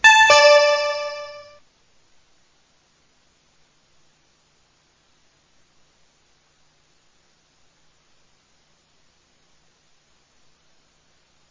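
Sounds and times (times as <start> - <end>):
electronic two-note chime signalling a city council vote: 0.0 - 1.6.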